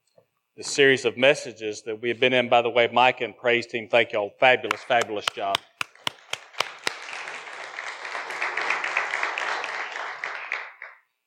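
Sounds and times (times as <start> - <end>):
speech: 0.6 - 5.7
audience clapping: 4.6 - 11.1.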